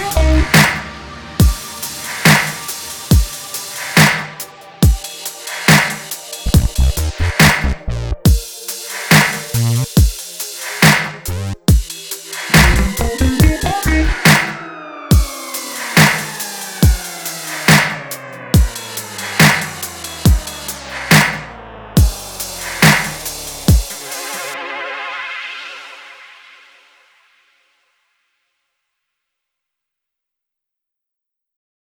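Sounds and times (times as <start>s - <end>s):
forest funk music: 0.0s - 24.6s.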